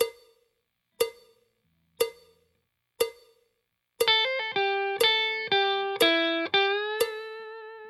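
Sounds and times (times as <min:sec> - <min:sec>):
slow blues guitar licks: 0:04.1 - 0:07.8.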